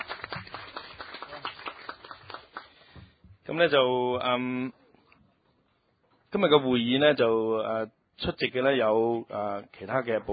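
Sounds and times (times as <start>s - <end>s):
group applauding: 0.0s - 3.0s
speech: 3.5s - 4.8s, 6.3s - 10.3s.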